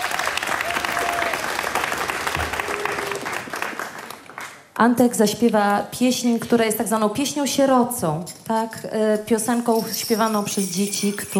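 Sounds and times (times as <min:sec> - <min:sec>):
audience applause: 0:00.0 - 0:04.6
speech: 0:04.8 - 0:11.3.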